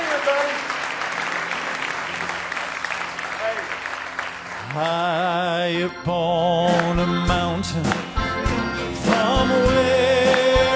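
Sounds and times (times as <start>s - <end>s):
audience clapping hands in praise: 0.0s - 5.4s, 6.7s - 7.1s, 7.8s - 8.2s, 9.0s - 10.7s
speech: 4.7s - 8.1s.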